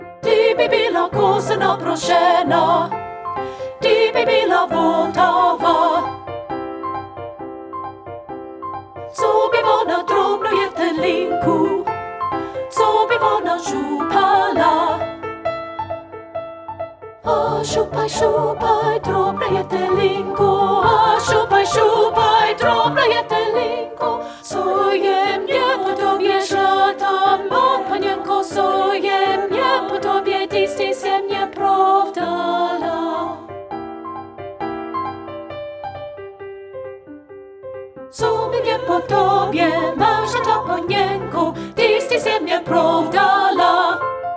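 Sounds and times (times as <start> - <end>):
soprano singing: 0.2 - 6.4, 9.1 - 15.4, 17.2 - 33.6, 38.1 - 44.2.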